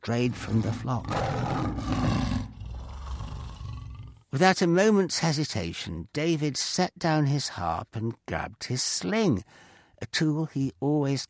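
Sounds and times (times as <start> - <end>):
speech: 0.0 - 2.5, 4.3 - 11.2
lion roaring: 0.5 - 4.2.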